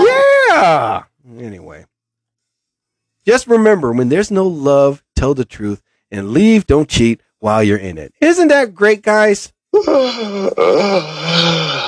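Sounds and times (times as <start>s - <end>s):
man yawning: 0.0s - 1.0s, 9.8s - 11.8s
speech: 3.2s - 11.8s.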